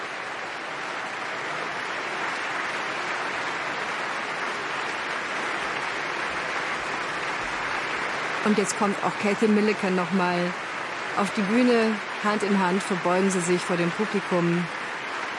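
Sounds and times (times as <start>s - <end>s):
concert audience applause: 0.0s - 15.3s
speech: 8.4s - 14.8s.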